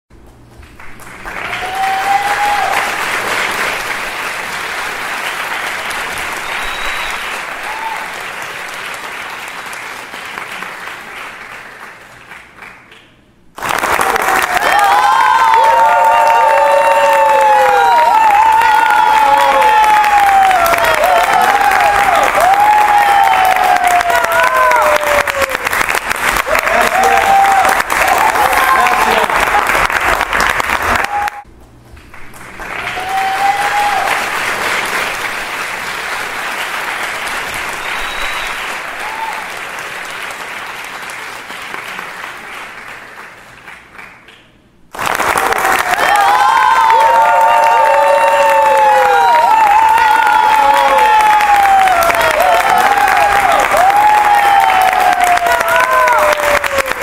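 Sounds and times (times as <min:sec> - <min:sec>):
audience applauding: 0:00.2 - 0:57.0
audience shouting: 0:14.2 - 0:25.7, 0:26.5 - 0:29.9, 0:45.6 - 0:57.0.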